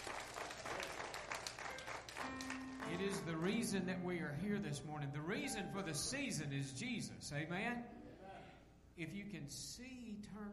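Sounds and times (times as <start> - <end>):
church congregation clapping hands in praise: 0.0 - 3.8
speech: 2.9 - 8.0, 9.0 - 10.5.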